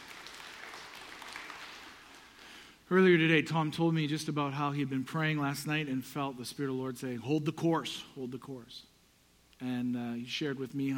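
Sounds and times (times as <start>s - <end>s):
audience clapping: 0.0s - 2.8s
speech: 2.9s - 8.9s, 9.6s - 10.9s.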